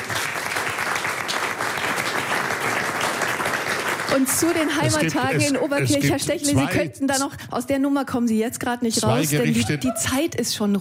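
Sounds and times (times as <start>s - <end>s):
applause: 0.0s - 6.0s
speech: 4.2s - 10.7s.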